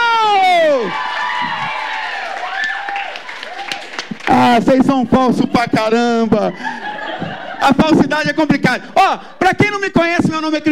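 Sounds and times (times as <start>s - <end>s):
audience applause: 0.8s - 4.7s
speech: 4.6s - 6.8s, 7.6s - 10.7s
laughter: 5.0s - 8.4s.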